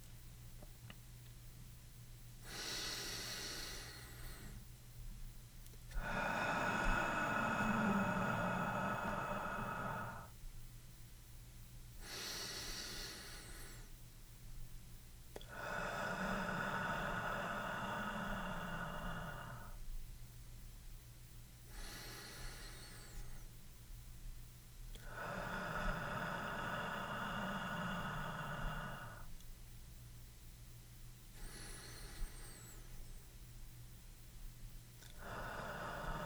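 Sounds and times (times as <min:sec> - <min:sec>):
slow deep breathing in a guided bedtime meditation: 0:02.4 - 0:04.7, 0:05.9 - 0:10.4, 0:12.0 - 0:14.0, 0:15.4 - 0:20.0, 0:21.6 - 0:23.6, 0:24.9 - 0:29.4, 0:31.2 - 0:33.8, 0:35.0 - 0:36.2.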